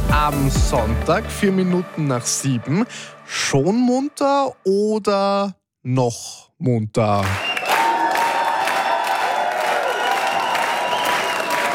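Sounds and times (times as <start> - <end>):
speech: 0.2 - 7.5
crowd cheering and applauding: 7.2 - 11.7
whoops and shouts: 7.5 - 11.7.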